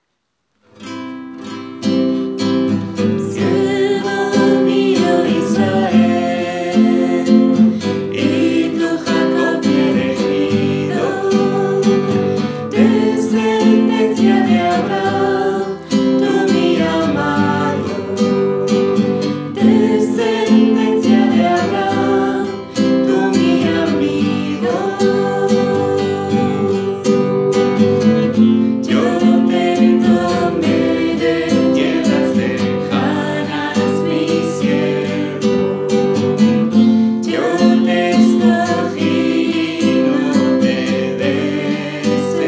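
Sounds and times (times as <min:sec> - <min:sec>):
guitar: 0:00.6 - 0:42.4.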